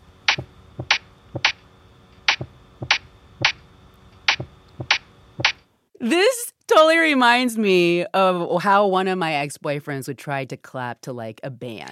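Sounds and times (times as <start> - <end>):
rhythmic beat pattern: 2.3 - 3.6, 4.3 - 5.6
speech: 6.0 - 11.9.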